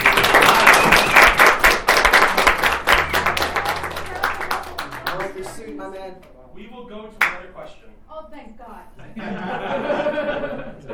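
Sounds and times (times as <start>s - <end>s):
crowd applauding: 0.0s - 6.0s
laughter: 0.1s - 1.3s, 9.0s - 10.9s
speech: 6.1s - 10.9s.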